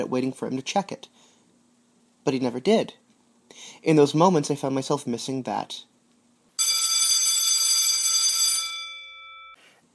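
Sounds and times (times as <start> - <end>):
speech: 0.0 - 1.3, 2.2 - 5.9
class bell ringing: 6.6 - 9.6.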